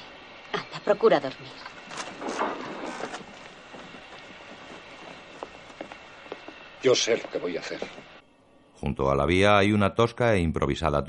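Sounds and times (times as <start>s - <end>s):
train moving off the main line onto a dead-end siding: 0.0s - 8.2s
speech: 0.9s - 1.8s, 6.8s - 8.1s, 8.8s - 11.0s.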